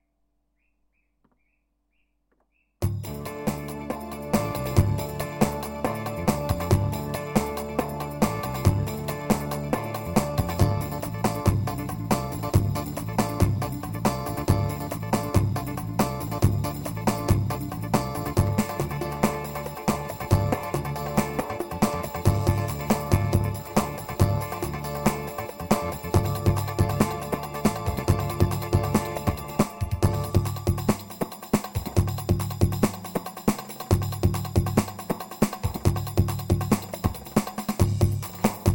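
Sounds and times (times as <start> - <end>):
PA-500 Roman rhythm pattern: 2.8 - 38.7.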